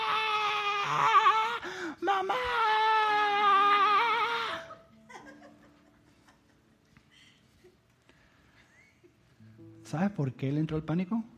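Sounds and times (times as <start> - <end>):
voice imitating a child screaming in panic: 0.0 - 4.8
speech: 0.9 - 1.2, 9.9 - 11.3
laughter: 4.6 - 7.8.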